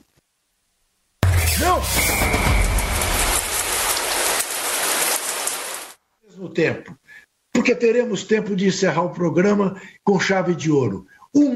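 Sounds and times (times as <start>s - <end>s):
low rumble: 1.2s - 4.3s
shower water running: 1.4s - 6.0s
speech: 6.4s - 11.5s.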